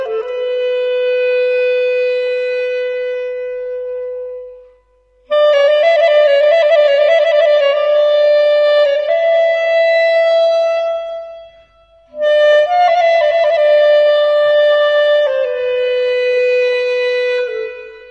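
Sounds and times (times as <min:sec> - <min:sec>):
solo clarinet in Avaz Dashti: 0:00.0 - 0:18.0.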